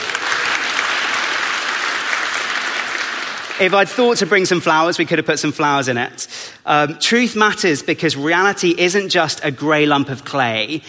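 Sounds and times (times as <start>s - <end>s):
crowd clapping: 0.0s - 4.4s
speech: 3.6s - 10.8s.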